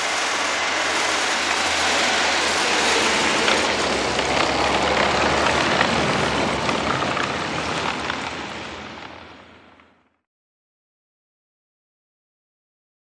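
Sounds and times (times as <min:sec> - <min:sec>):
snow grooming machine running: 0:00.0 - 0:10.1.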